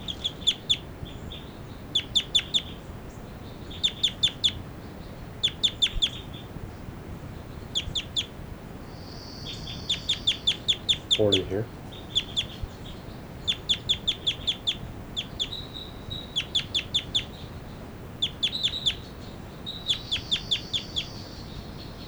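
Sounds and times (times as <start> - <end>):
bird flight calls: 0.0 - 22.0
speech: 11.2 - 11.8.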